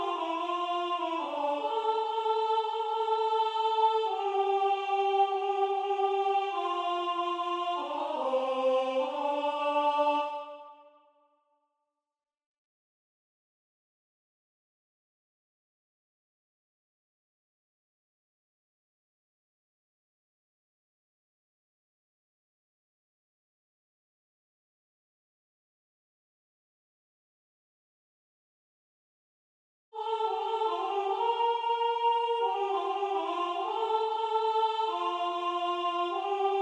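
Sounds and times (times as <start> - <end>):
alto voice singing: 0.0 - 10.9, 30.0 - 36.6.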